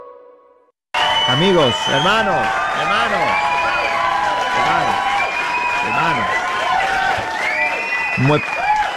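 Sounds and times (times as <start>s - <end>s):
whistles: 0.9s - 6.6s, 7.3s - 8.9s
audience applauding: 0.9s - 8.9s
speech: 1.4s - 3.8s, 8.1s - 8.6s.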